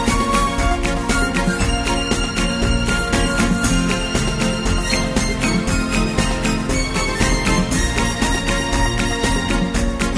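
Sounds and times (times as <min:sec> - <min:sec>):
Spanish dance music: 0:00.0 - 0:10.1.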